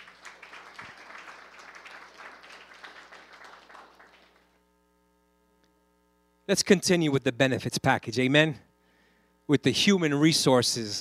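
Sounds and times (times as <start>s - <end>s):
audience applause: 0.0s - 4.5s
speech: 6.5s - 8.7s, 9.5s - 11.0s.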